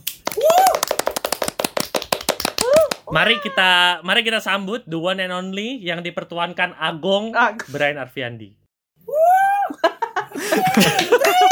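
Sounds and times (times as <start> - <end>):
hand clapping: 0.0 - 3.4, 10.7 - 11.5
rising vocal whoops: 0.2 - 1.0, 2.6 - 3.9, 9.0 - 9.8, 10.5 - 11.5
speech: 3.1 - 9.1, 10.6 - 11.1
laughter: 9.7 - 11.5.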